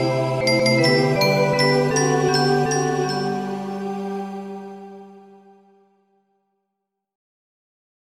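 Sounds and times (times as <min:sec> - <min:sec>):
multi-instrument music: 0:00.0 - 0:05.0.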